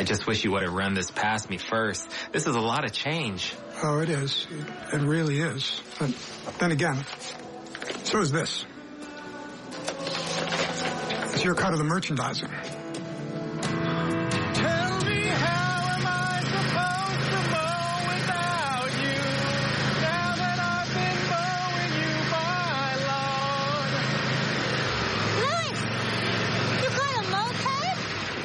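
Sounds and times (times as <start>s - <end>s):
speech: 0.0s - 7.4s, 8.1s - 8.7s, 11.4s - 12.6s
riding lawn mower engine running: 0.0s - 8.4s, 9.7s - 28.4s.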